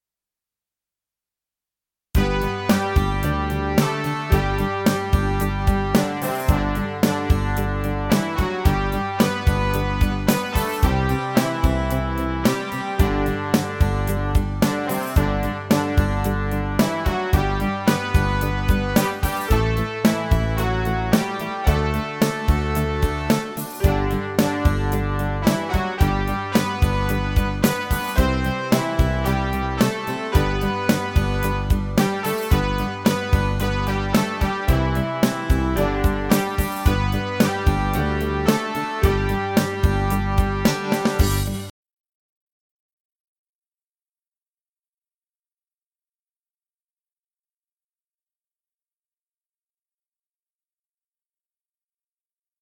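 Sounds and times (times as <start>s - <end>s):
recorder parade music: 2.2s - 41.7s.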